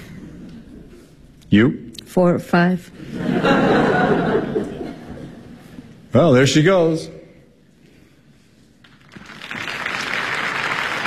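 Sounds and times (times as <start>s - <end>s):
speech: 1.5s - 4.8s, 6.1s - 7.2s
laughter: 3.0s - 5.9s
theatre audience applauding a third act entrance: 8.8s - 11.0s.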